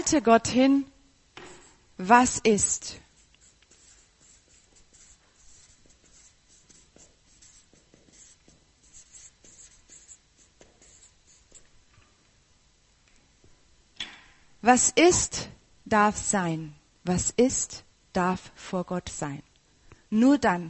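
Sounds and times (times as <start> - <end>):
speech: 0.0 - 0.9, 2.0 - 3.0, 14.6 - 19.5, 20.1 - 20.6
pen scratching on paper: 3.2 - 11.6.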